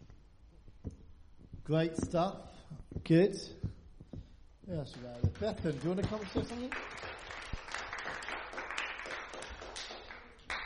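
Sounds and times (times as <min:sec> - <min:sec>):
speech: 0:01.7 - 0:03.6, 0:04.7 - 0:07.1
audience applause: 0:04.9 - 0:10.6.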